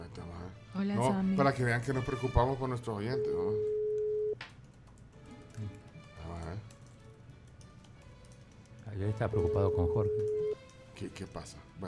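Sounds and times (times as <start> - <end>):
speech: 0.8 - 3.8, 5.6 - 5.8, 9.0 - 10.4, 11.0 - 11.8
telephone tone of an unanswered dialed call: 3.1 - 4.4, 9.3 - 10.6.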